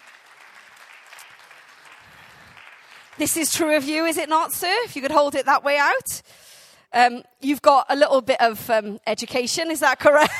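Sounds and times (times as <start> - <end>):
audience applause: 0.0 - 3.8
speech: 3.2 - 10.3.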